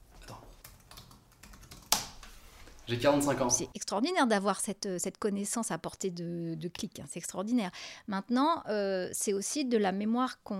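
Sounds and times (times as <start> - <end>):
typing a Google search on a computer keyboard: 0.6 - 2.2
speech: 2.9 - 10.5.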